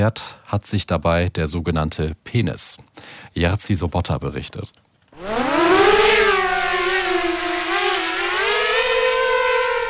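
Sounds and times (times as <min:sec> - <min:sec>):
speech: 0:00.0 - 0:05.4
drone racing overhead: 0:05.2 - 0:09.8.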